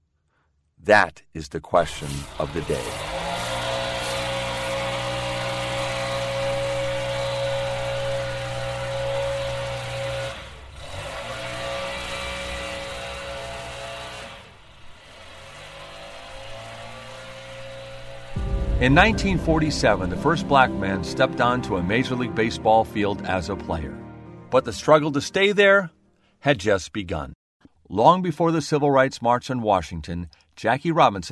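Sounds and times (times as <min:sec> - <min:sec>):
speech: 0:00.8 - 0:03.2, 0:18.8 - 0:31.3
leaf blower running: 0:02.1 - 0:18.4.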